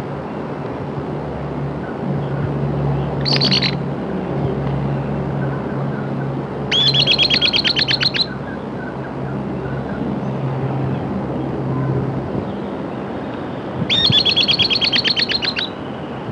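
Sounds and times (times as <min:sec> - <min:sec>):
low engine-like mechanical drone: 0:00.0 - 0:16.3
bird song trill: 0:03.2 - 0:03.8, 0:06.7 - 0:09.0, 0:13.9 - 0:15.8.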